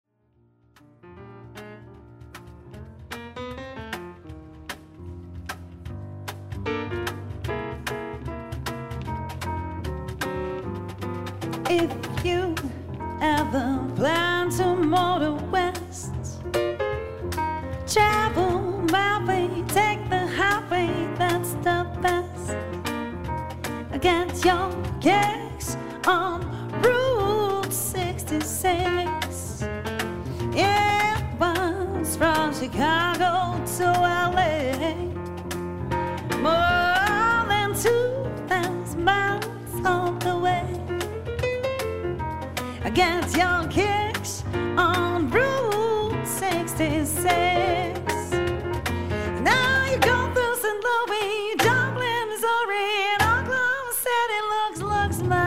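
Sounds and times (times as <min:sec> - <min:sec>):
lounge trio piano: 0:00.1 - 0:55.4
lounge trio percussion: 0:00.6 - 0:55.4
lounge trio vocals: 0:11.6 - 0:16.5, 0:17.9 - 0:22.8, 0:23.7 - 0:29.7, 0:30.4 - 0:35.2, 0:36.2 - 0:41.1, 0:42.6 - 0:55.4.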